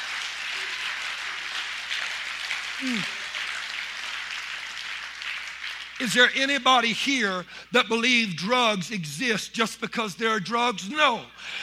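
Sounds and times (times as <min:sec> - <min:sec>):
audience applause: 0:00.0 - 0:06.3
speech: 0:02.8 - 0:03.2, 0:06.0 - 0:11.6.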